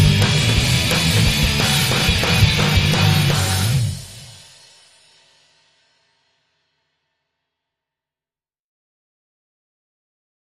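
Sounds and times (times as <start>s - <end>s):
instrumental music: 0.0s - 4.5s.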